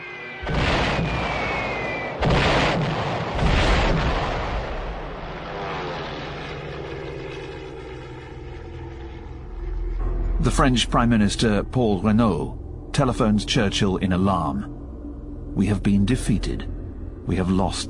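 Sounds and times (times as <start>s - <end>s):
Stuka dive bombers diving with siren-like whine: 0.0s - 2.7s, 4.6s - 17.8s
Stuka dive bomber engines roaring: 0.0s - 17.8s
heavy bomb blasts: 0.4s - 5.8s
speech: 10.6s - 14.8s, 15.6s - 16.7s, 17.3s - 17.8s.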